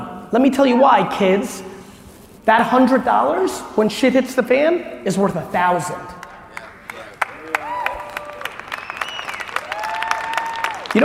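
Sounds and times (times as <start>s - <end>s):
speech: 0.3s - 1.7s, 2.4s - 6.2s
audience clapping: 6.2s - 11.0s.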